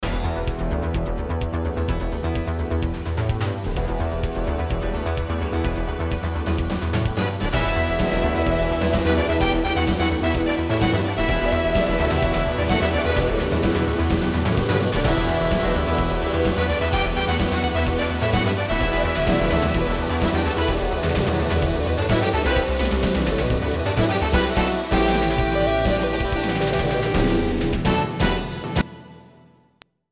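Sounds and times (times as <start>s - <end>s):
intro music: 0.0s - 29.6s.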